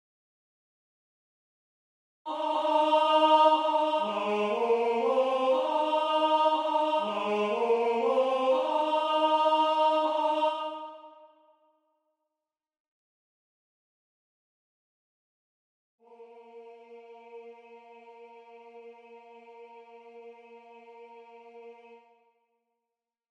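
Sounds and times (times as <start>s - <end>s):
tenor singing: 2.3s - 11.1s.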